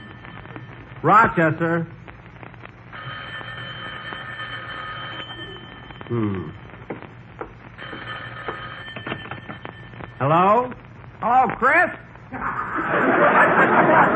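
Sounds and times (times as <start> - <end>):
speech: 1.0 - 2.0, 6.1 - 6.6, 10.2 - 14.1
telephone ringing: 2.9 - 6.1, 7.8 - 10.3
laughter: 12.3 - 14.1.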